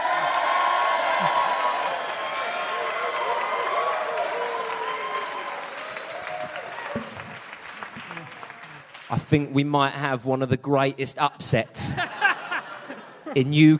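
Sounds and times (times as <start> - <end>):
audience screaming and shouting: 0.0 - 8.2
applause: 0.0 - 9.7
speech: 9.1 - 12.2, 13.3 - 13.7
laughter: 11.8 - 13.7.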